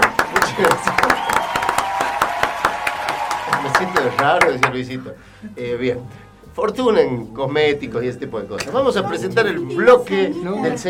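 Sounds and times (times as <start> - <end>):
applause: 0.0 - 4.8
speech: 4.2 - 10.8.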